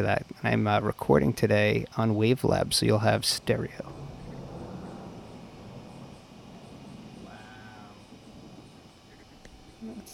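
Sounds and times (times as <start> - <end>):
speech: 0.0 - 4.0
Florida thunder after lightning: 3.2 - 10.1.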